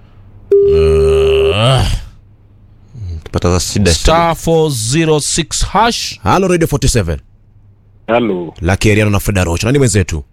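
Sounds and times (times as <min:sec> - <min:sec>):
telephone line tone during a call to a radio phone-in: 0:00.5 - 0:01.0
speech: 0:03.4 - 0:07.3, 0:08.1 - 0:10.3.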